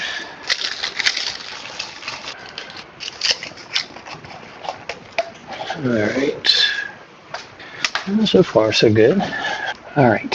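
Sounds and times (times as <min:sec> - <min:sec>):
sticky tape crackling as a T4 Torx screw is stuck onto it: 0:00.4 - 0:05.3
speech: 0:05.8 - 0:06.5, 0:08.1 - 0:10.3.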